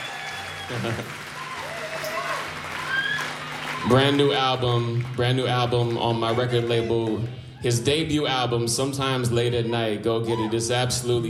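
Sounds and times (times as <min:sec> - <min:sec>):
audience applause: 0:00.0 - 0:07.5
speech: 0:00.7 - 0:01.3, 0:03.8 - 0:11.2.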